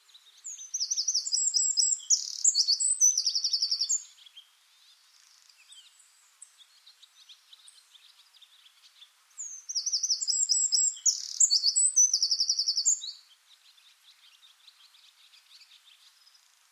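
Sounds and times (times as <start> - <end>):
Eurasian wren singing: 0.2 - 4.4, 5.3 - 16.5.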